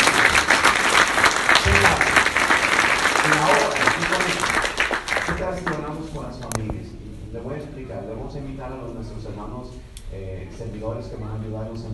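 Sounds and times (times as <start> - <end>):
audience applause: 0.0 - 5.8
speech: 11.0 - 11.9.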